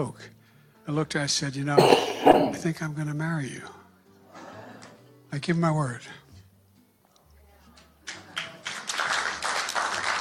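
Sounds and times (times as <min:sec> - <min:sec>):
speech: 0:00.0 - 0:03.8, 0:05.3 - 0:06.2
audience clapping: 0:08.1 - 0:10.1.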